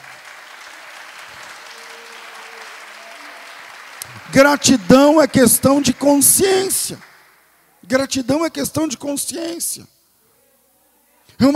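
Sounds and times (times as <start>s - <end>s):
audience clapping: 0.0s - 7.7s
speech: 4.3s - 7.1s, 7.9s - 9.9s, 11.4s - 11.5s.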